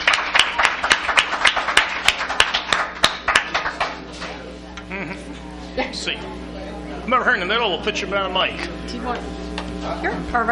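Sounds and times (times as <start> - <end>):
crowd applause: 0.0 - 4.1
speech: 5.9 - 10.5.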